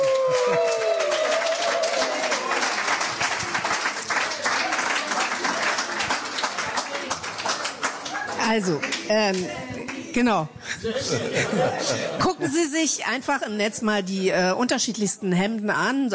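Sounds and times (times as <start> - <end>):
audience applause: 0.0 - 10.0
speech: 8.5 - 16.1
laughter: 10.6 - 12.7.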